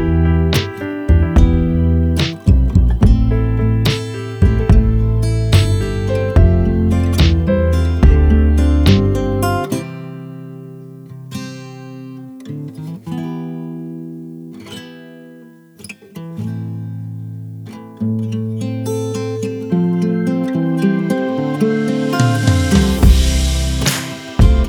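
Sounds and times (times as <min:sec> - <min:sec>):
instrumental mix: 0:00.0 - 0:11.0, 0:18.8 - 0:24.6.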